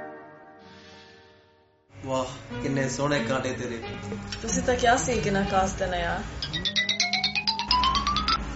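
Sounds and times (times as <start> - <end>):
speech: 2.2 - 6.7
phone ringtone: 6.4 - 8.5.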